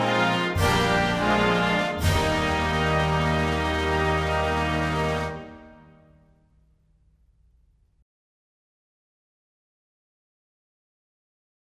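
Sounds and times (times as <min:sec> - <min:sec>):
national anthem music: 0:00.0 - 0:06.4.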